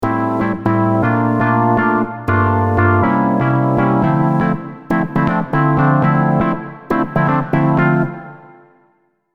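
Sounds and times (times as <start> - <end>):
melody in A minor at 120 BPM: 0.0 - 8.7.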